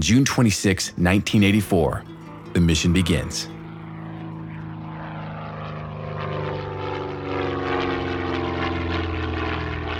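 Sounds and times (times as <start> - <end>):
speech: 0.0 - 3.6
propeller cargo plane landing: 0.0 - 9.9.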